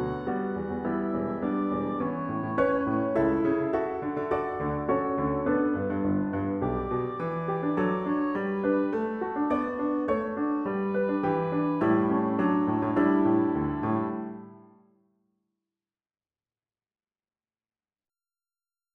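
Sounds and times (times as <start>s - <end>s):
guitar sample: 0.0s - 14.6s.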